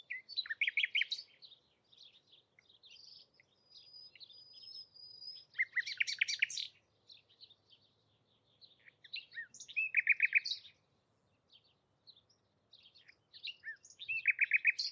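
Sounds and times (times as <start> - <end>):
bird singing: 0.0 - 14.8.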